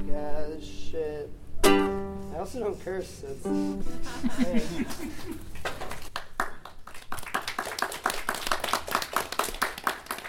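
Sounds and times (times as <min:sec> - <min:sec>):
speech: 0:00.2 - 0:05.7
laughter: 0:03.8 - 0:05.6
audience clapping after a song: 0:04.6 - 0:10.2.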